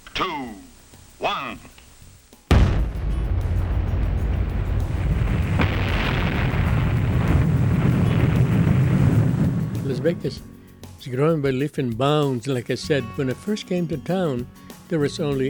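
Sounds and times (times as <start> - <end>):
speech: 0.2 - 0.6, 1.2 - 1.8, 10.0 - 15.4
nuclear weapon test explosion at the Nevada Test Site: 2.5 - 10.4.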